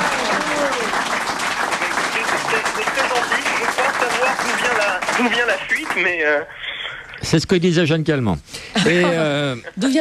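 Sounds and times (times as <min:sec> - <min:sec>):
audience applauding: 0:00.0 - 0:06.2
speech: 0:04.6 - 0:06.6, 0:07.2 - 0:09.9.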